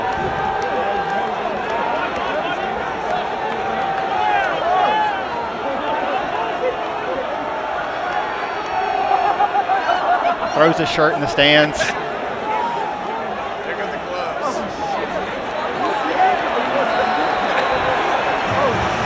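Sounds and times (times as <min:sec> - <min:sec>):
stadium crowd roaring: 0:00.0 - 0:19.0
laughter: 0:09.0 - 0:12.0, 0:16.7 - 0:18.6
speech: 0:10.6 - 0:12.0.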